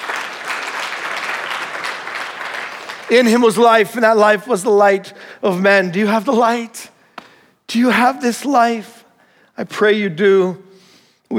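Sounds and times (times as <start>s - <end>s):
audience applause: 0.0s - 3.6s
speech: 3.1s - 6.8s, 7.7s - 9.0s, 9.6s - 10.7s.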